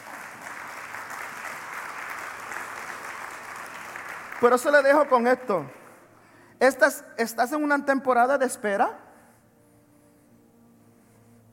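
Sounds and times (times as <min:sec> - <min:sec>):
audience applause: 0:00.0 - 0:06.0
speech: 0:04.4 - 0:05.8, 0:06.6 - 0:09.0.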